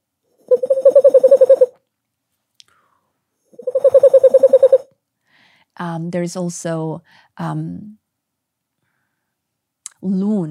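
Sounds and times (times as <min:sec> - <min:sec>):
voice imitating boreal owl call: 0:00.5 - 0:01.7, 0:03.6 - 0:04.8
speech: 0:05.8 - 0:08.0, 0:10.0 - 0:10.4.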